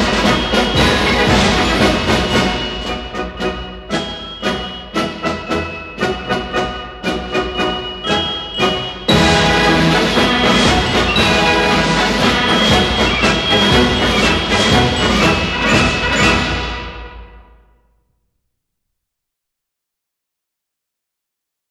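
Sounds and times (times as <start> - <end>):
military march: 0.0 - 17.4.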